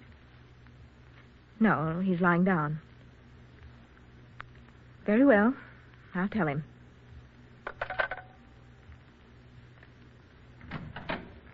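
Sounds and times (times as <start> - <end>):
speech: 1.6 - 2.9, 5.1 - 6.7
door being closed: 10.6 - 11.5.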